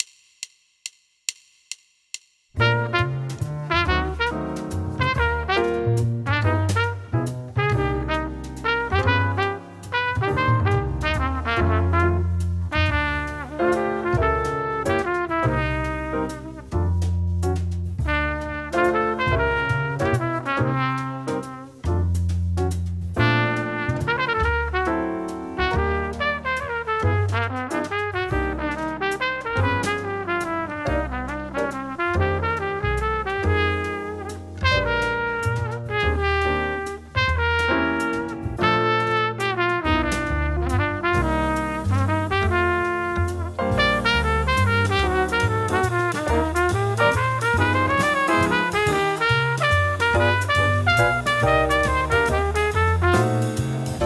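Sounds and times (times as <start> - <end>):
jazz etude: 2.6 - 54.0.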